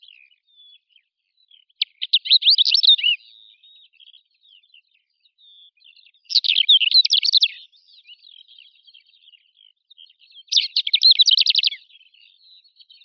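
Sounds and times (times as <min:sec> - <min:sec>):
Calandrella brachydactyla greater short-toed lark singing: 0:01.8 - 0:03.3, 0:06.3 - 0:07.7, 0:10.5 - 0:11.8.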